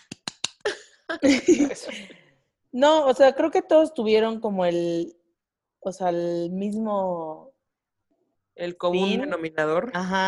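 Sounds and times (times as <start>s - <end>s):
hand clapping: 0.0s - 0.7s
laughter: 1.2s - 2.2s
speech: 1.2s - 5.2s, 5.8s - 7.5s, 8.6s - 10.2s.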